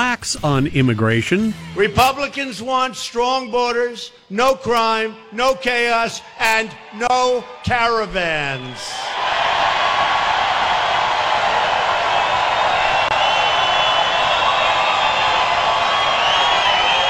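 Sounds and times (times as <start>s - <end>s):
speech: 0.2s - 9.1s
rally crowd cheering: 5.0s - 17.0s.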